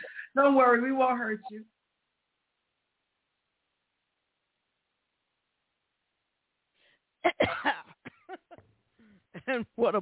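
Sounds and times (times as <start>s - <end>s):
speech: 0.4s - 1.7s, 9.4s - 9.9s
person coughing into microphone: 7.3s - 9.7s.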